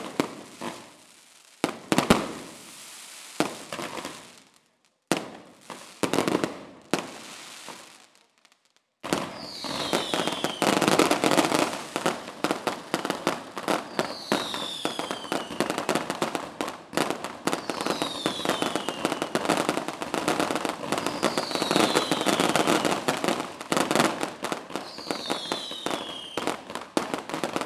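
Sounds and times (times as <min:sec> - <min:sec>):
fireworks: 0:00.0 - 0:27.6.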